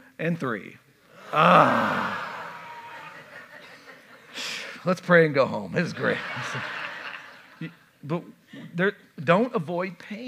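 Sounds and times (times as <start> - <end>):
speech: 0.2 - 2.2, 4.8 - 6.8, 7.6 - 10.2
church congregation groaning together on cue: 1.1 - 3.5
laughter: 1.2 - 4.6, 5.8 - 7.8.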